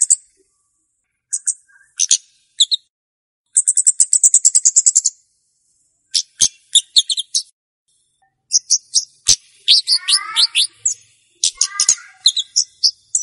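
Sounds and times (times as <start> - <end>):
flowerpecker chirps used as a lure for wild birds: 0.0 - 0.5, 1.3 - 2.9, 3.5 - 5.2, 6.1 - 7.5, 8.4 - 13.2.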